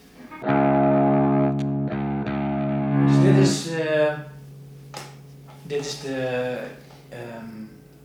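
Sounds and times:
electric guitar through amplifier middle channel: 0.0 - 5.9
speech: 5.8 - 7.6.

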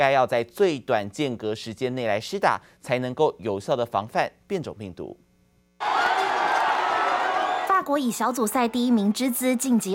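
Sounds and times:
speech: 0.0 - 5.2, 7.9 - 9.9
football fans cheering together: 5.8 - 9.9.

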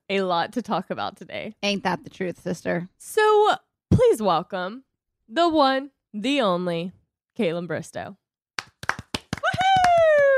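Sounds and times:
speech: 0.1 - 8.2
hosts clapping a guest in: 8.6 - 10.3.

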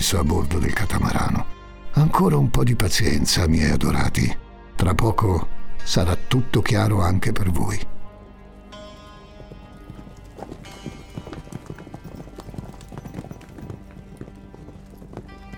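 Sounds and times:
speech: 0.0 - 7.9
horses galloping: 8.2 - 15.5.

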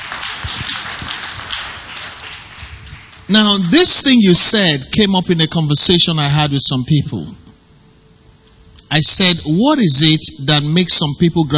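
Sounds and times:
audience clapping: 0.0 - 4.2
speech: 3.3 - 7.5, 9.0 - 11.5.

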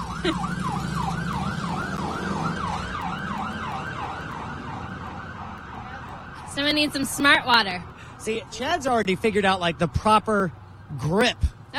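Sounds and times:
police siren passing: 0.0 - 7.2
low rumble of traffic: 0.0 - 11.7
speech: 0.2 - 0.8, 6.6 - 11.7.

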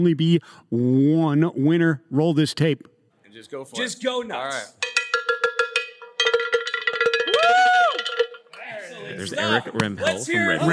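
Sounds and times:
speech: 0.0 - 5.0, 9.0 - 10.7
cowbell being played hard: 4.8 - 8.5.

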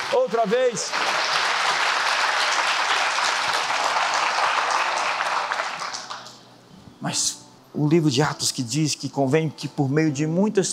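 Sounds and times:
audience standing applause: 0.0 - 6.4
speech: 0.1 - 1.4, 7.0 - 10.7.

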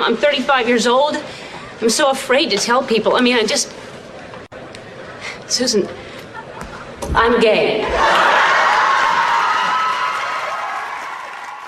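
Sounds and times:
speech: 0.0 - 3.9, 5.5 - 6.1, 7.1 - 8.4
long studio audience applause: 8.0 - 11.6.

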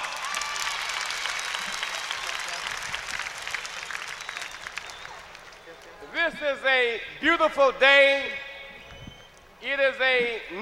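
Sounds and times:
audience applause: 0.0 - 6.0
speech: 6.3 - 8.4, 9.6 - 10.6.

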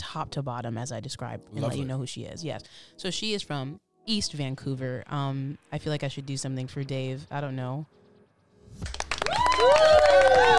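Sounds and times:
speech: 0.1 - 8.0, 8.7 - 9.0, 9.6 - 10.5
clapping: 8.8 - 10.5
whoops and cheers: 9.2 - 10.5.

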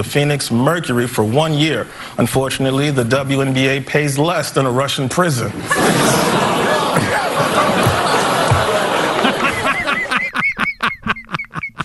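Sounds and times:
speech: 0.0 - 6.5
crowd groaning: 5.6 - 10.1
laughter: 5.6 - 11.8.

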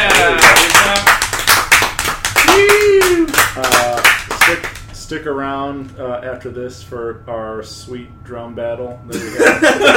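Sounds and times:
audience clapping: 0.0 - 5.0
speech: 5.1 - 9.9
laughter: 9.1 - 9.9.

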